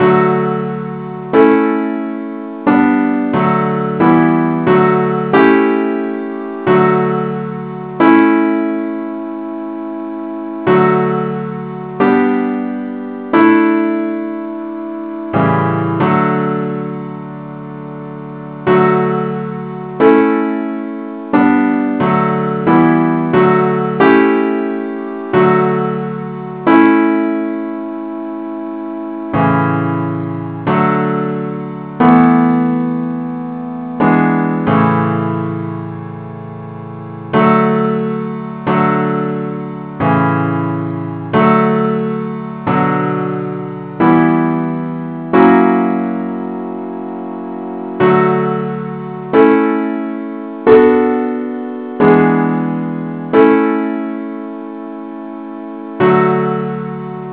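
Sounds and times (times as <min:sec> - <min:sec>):
simple accompaniment in D: 0:00.0 - 0:57.3.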